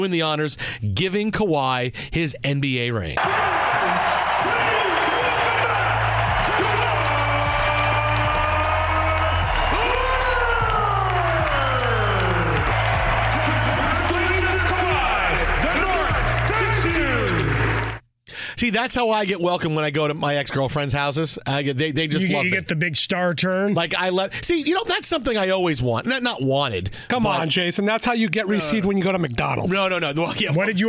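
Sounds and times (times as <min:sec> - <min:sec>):
speech: 0:00.0 - 0:04.2, 0:18.6 - 0:30.8
arena crowd cheering and applauding: 0:03.2 - 0:18.0
thumping bass music: 0:05.3 - 0:18.0.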